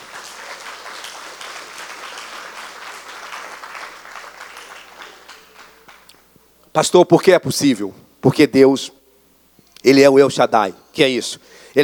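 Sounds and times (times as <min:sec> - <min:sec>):
crowd clapping: 0:00.0 - 0:06.3
speech: 0:06.8 - 0:09.0, 0:09.8 - 0:11.8.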